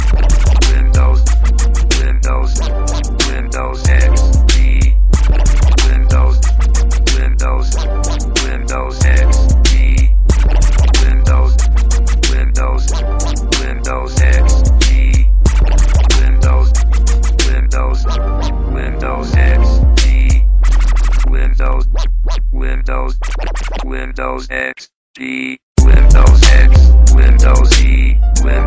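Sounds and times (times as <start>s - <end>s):
heavy bass: 0.0s - 24.6s, 25.8s - 28.6s.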